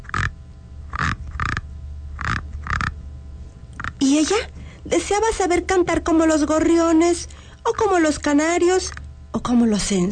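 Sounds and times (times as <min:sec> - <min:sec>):
frog croaking: 0:00.0 - 0:03.0, 0:03.7 - 0:05.1, 0:07.4 - 0:09.1
speech: 0:04.0 - 0:10.1.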